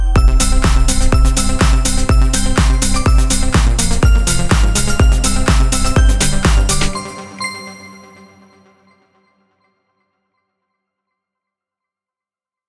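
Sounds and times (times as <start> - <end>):
christmas song remix: 0.0 - 8.6.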